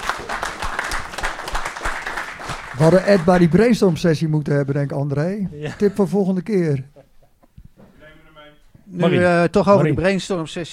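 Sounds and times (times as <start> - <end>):
group clapping in a meeting: 0.0 - 4.1
speech: 2.8 - 6.9, 8.9 - 10.7.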